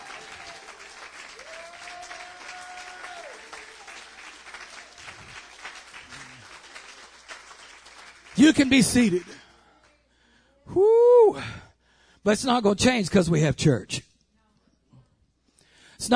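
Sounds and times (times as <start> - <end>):
audience clapping: 0.0 - 10.0
speech: 8.4 - 9.4, 12.2 - 14.1.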